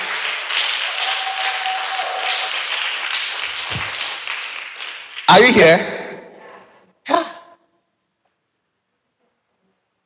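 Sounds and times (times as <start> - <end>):
audience clapping hands: 0.0 - 6.2
speech: 5.3 - 5.9.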